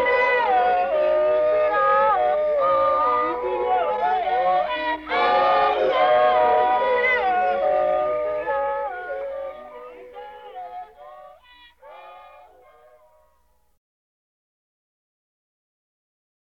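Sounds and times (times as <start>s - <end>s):
Pygmy girls singing an initiation song: 0.0s - 12.7s.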